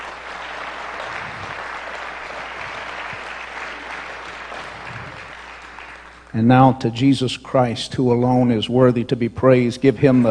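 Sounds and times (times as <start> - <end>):
audience applause: 0.0 - 6.3, 10.0 - 10.2
speech: 6.3 - 10.2.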